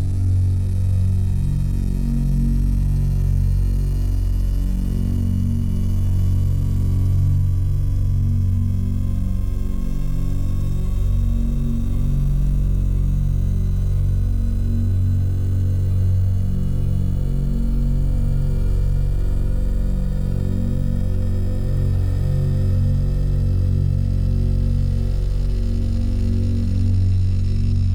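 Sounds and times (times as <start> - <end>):
thick low buzzing drone tone: 0.0 - 27.9.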